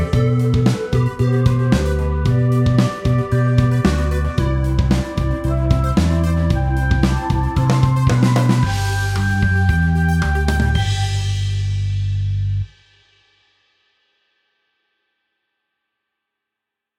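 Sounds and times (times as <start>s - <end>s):
happy heartwarming healing band background music: 0.0s - 12.6s.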